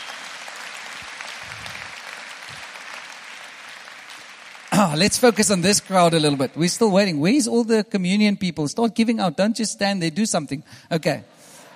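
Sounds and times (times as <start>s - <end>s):
audience applause: 0.0s - 6.6s
speech: 4.8s - 11.3s.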